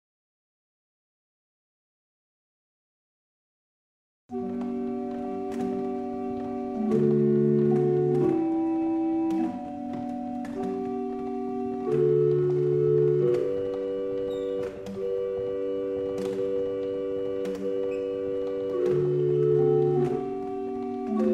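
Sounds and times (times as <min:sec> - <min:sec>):
barrel organ: 0:04.3 - 0:21.3.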